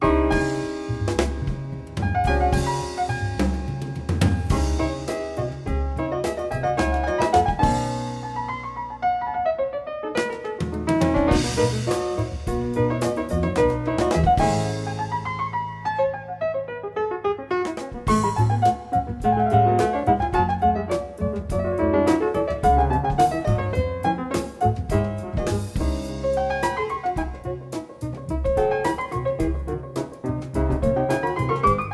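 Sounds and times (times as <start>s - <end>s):
two pianos playing a concerto in C minor: 0.0s - 31.9s.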